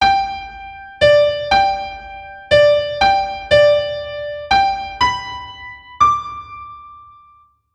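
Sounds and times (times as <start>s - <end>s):
classical melody only: 0.0s - 7.3s.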